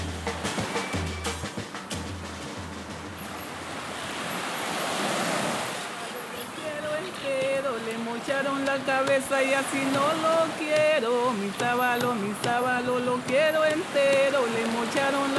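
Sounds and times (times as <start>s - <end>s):
ocean waves breaking on shore on Colombia's northern Pacific coast near the Panama border: 0.0s - 15.3s
sharp knocks: 7.4s - 15.3s
speech: 8.8s - 15.3s.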